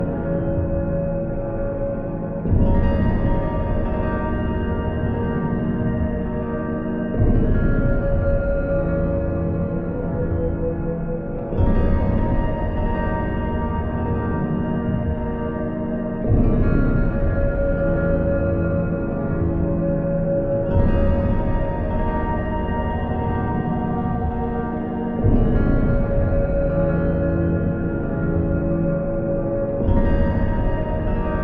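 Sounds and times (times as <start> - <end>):
tense cinematic guitar soundscape: 0.0 - 31.4.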